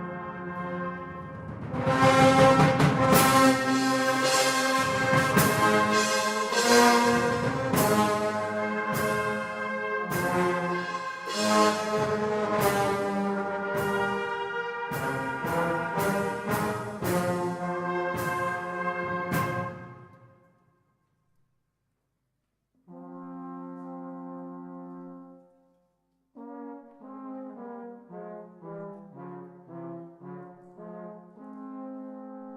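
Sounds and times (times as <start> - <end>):
fanfare: 0.1 - 20.2.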